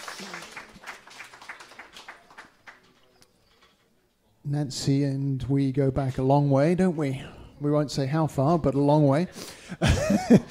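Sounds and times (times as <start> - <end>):
round of audience applause: 0.0 - 3.0
speech: 4.5 - 10.5
laughter: 9.8 - 10.5.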